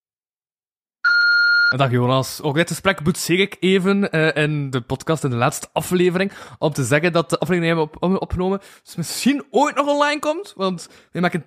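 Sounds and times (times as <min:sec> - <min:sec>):
voicemail beep tone: 0:01.0 - 0:01.8
speech: 0:01.7 - 0:11.4.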